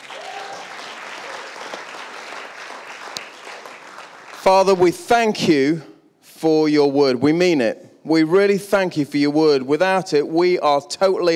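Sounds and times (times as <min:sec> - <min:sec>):
church congregation applauding to welcome their pastor: 0:00.0 - 0:04.8
speech: 0:04.4 - 0:11.3.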